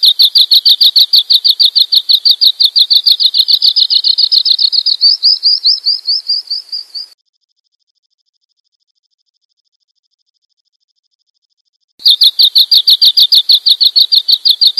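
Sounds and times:
bird chirping: 0.0 - 7.2, 12.0 - 14.7.

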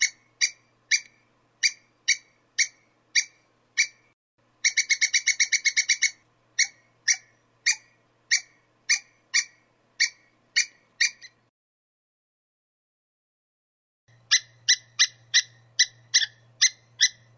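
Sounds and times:
squirrel calling with harsh sharp notes: 0.0 - 11.5, 14.1 - 17.3.

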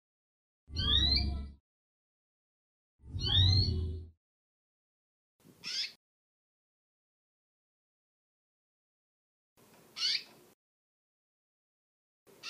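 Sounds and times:
female canary singing: 0.7 - 1.6, 3.1 - 4.1, 5.6 - 6.0, 10.0 - 10.4.

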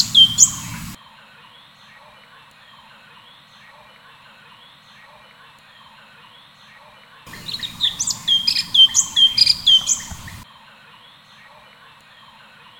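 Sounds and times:
cucak cungkok bird chirping: 0.0 - 1.0, 7.3 - 10.4.

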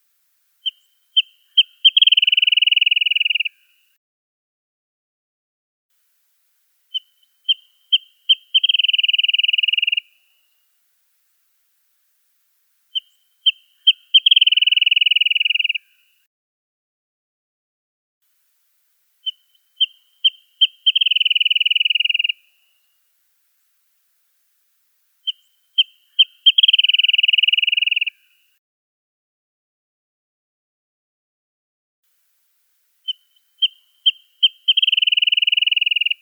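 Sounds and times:
wrentit chirping: 0.6 - 3.9, 6.9 - 10.6, 12.9 - 16.2, 19.2 - 22.8, 25.2 - 28.4, 33.0 - 36.2.

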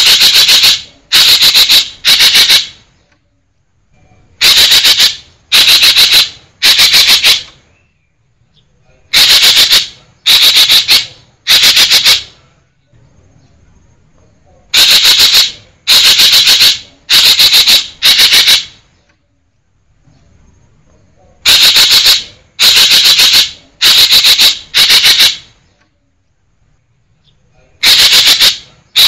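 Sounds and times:
green magpie harsh chattering: 0.0 - 2.8, 4.4 - 7.6, 9.1 - 12.4, 14.7 - 18.8, 21.4 - 25.5, 27.8 - 29.0.

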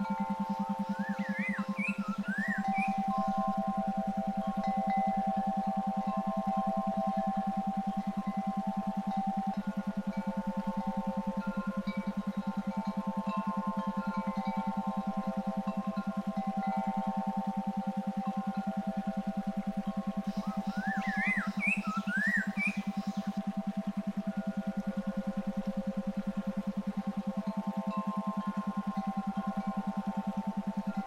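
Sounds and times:
brainwave therapy tones: 0.0 - 31.0.

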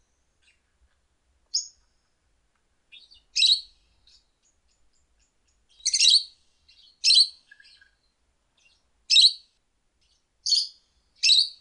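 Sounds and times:
lovebird calls: 1.5 - 1.8, 2.9 - 11.5.

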